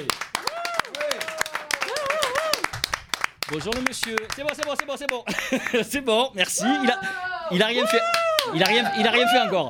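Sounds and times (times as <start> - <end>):
audience clapping: 0.0 - 5.9, 7.8 - 9.2
cheering and whooping voices: 0.4 - 2.7, 6.6 - 9.6
speech: 3.5 - 9.6.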